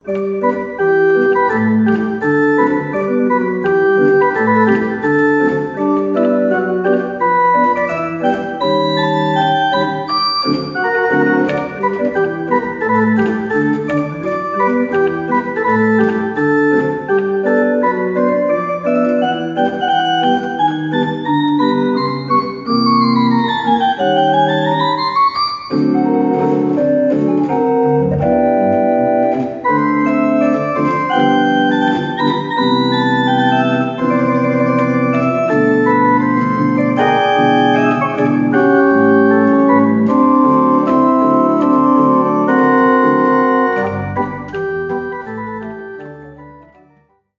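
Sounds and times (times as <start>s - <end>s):
jazz-pop music: 0.0s - 46.8s.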